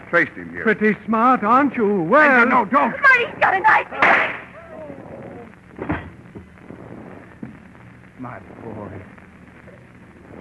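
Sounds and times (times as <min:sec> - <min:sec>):
speech: 0:00.1 - 0:04.3
gunshot: 0:04.0 - 0:04.5.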